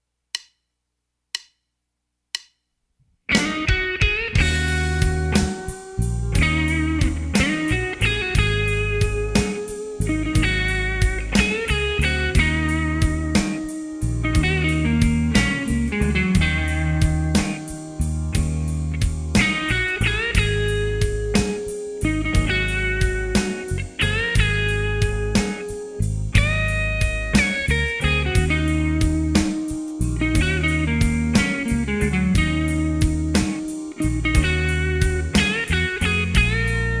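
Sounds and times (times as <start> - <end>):
lazy blues music: 3.3 - 36.9.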